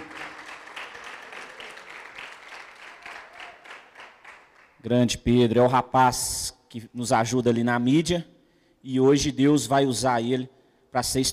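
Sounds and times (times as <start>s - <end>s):
audience applause: 0.0s - 4.8s
speech: 4.8s - 11.3s.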